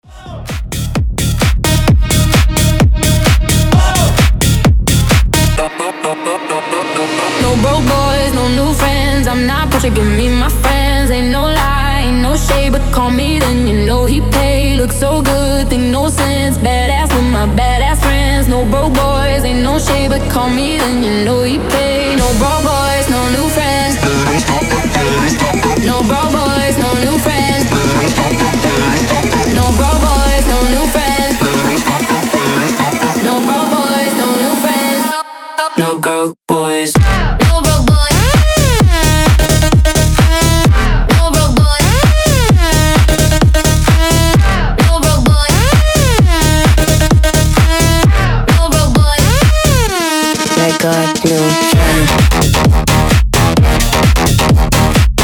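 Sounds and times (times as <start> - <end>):
130 bpm remix music: 0.0 - 36.2, 37.0 - 55.2.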